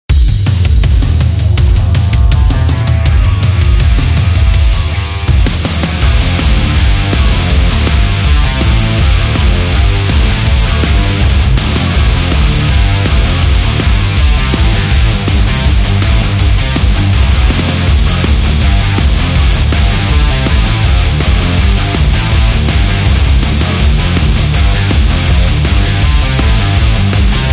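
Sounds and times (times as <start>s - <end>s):
hard rock music: 0.1s - 27.5s.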